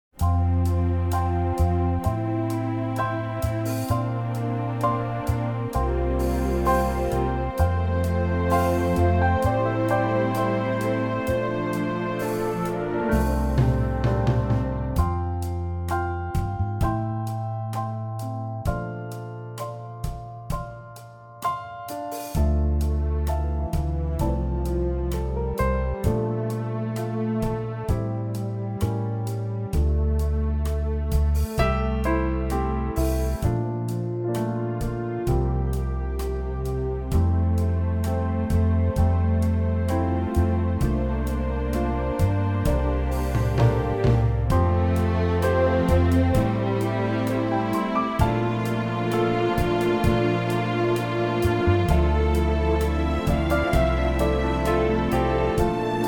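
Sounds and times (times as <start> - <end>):
orchestral music in F: 0.0 - 18.3, 21.9 - 56.0.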